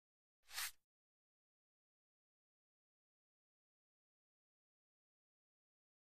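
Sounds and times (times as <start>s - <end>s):
card picked up and sliding: 0.5s - 0.7s.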